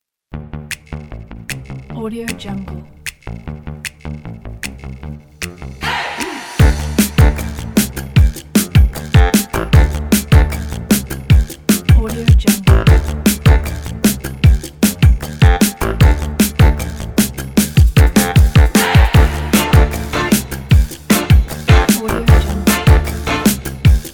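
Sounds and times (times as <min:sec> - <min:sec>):
fun upbeat music: 0:05.4 - 0:24.1.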